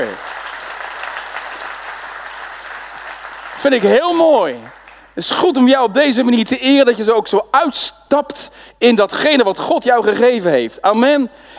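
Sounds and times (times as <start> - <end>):
speech: 0.0 - 0.3, 3.6 - 11.5
church congregation applauding: 0.0 - 5.4.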